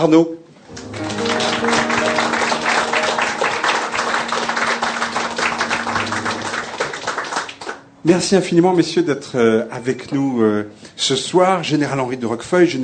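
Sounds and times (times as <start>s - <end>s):
speech: 0.0s - 0.4s, 8.0s - 12.8s
audience applause: 0.7s - 7.9s.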